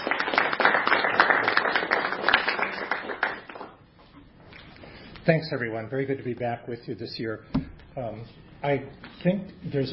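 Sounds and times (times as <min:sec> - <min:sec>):
audience applause welcoming a speaker: 0:00.0 - 0:03.8
speech: 0:05.3 - 0:09.9.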